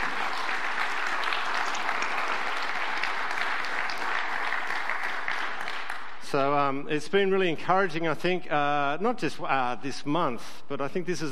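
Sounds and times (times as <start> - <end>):
audience applauding: 0.0 - 6.4
speech: 6.3 - 11.3.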